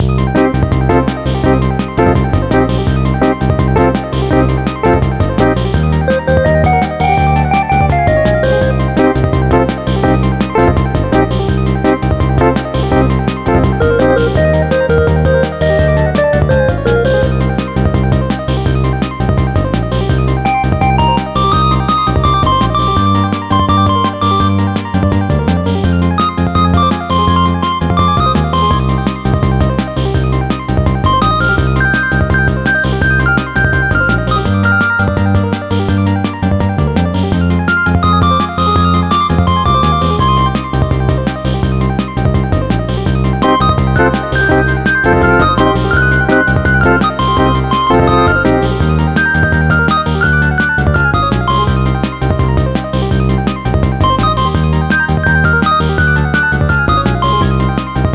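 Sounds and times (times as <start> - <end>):
bonus game tune: 0.0 - 58.1.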